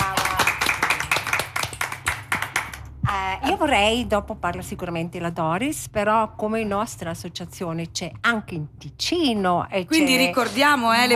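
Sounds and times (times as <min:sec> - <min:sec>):
crowd applause: 0:00.0 - 0:02.8
speech: 0:03.4 - 0:11.1.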